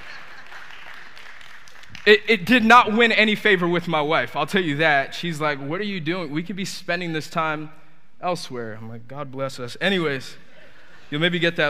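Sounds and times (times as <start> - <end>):
laughter: 0.0 - 0.8, 10.3 - 11.6
audience clapping: 0.0 - 2.5
speech: 2.0 - 10.4, 11.1 - 11.6.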